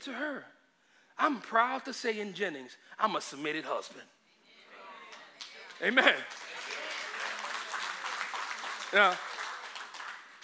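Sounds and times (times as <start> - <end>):
speech: 0.0 - 0.6, 1.2 - 4.2, 5.8 - 6.5, 8.9 - 9.3
audience clapping: 5.1 - 10.4.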